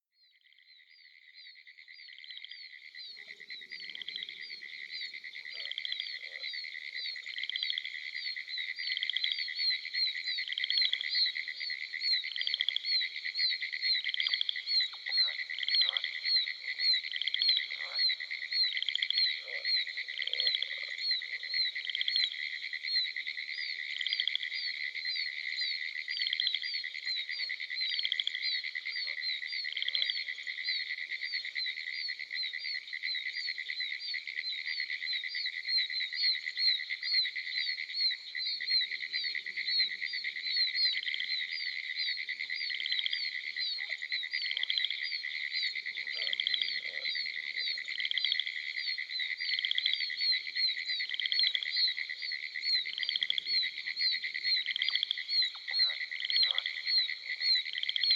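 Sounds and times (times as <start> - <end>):
southern chorus frog calling: 0.4 - 58.1.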